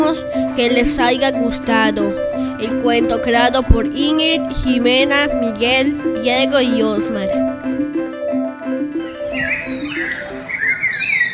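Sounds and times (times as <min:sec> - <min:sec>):
speech: 0:00.2 - 0:07.4
Ishkok bird singing in the morning: 0:09.0 - 0:11.3.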